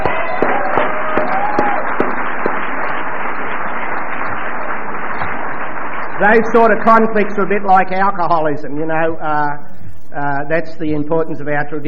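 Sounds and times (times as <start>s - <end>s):
audience clapping: 0.0s - 8.1s
speech: 6.2s - 11.8s.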